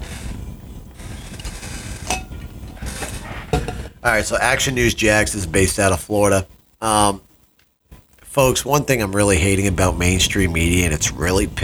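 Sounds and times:
glass clinking as someone gets a drink: 2.1s - 2.4s
speech: 4.0s - 7.3s, 8.4s - 11.6s.

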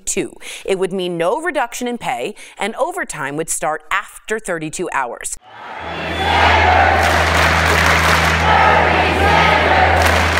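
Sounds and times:
speech: 0.2s - 9.9s
large crowd cheering: 5.4s - 10.3s.

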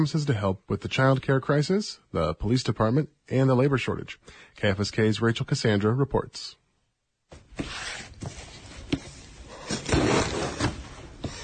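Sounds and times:
speech: 0.0s - 6.6s, 7.6s - 8.4s
cardboard box being opened: 9.6s - 10.9s.

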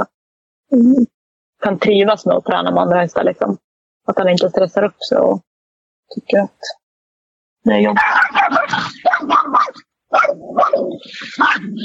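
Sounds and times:
speech: 0.7s - 5.5s, 6.1s - 6.8s, 7.6s - 11.8s
dog barking at a bird outside: 7.9s - 11.8s.

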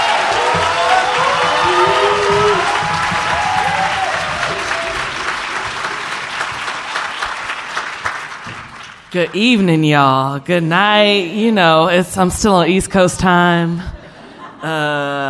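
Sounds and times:
audience hand clapping: 0.0s - 9.6s
speech: 9.2s - 14.0s, 14.6s - 15.2s.

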